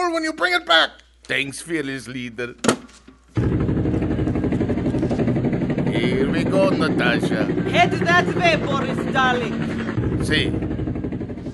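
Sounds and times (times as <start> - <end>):
speech: 0.1 - 3.5, 6.0 - 10.8
helicopter engine throbbing drone: 3.4 - 11.5.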